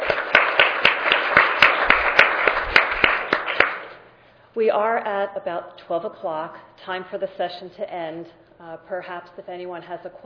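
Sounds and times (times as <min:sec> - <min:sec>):
audience applause: 0:00.0 - 0:04.0
speech: 0:04.6 - 0:10.2.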